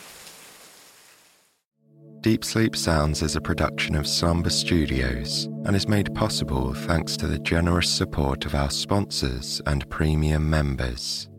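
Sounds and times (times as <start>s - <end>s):
hard rain storm: 0.0s - 1.3s
speech: 2.2s - 11.3s.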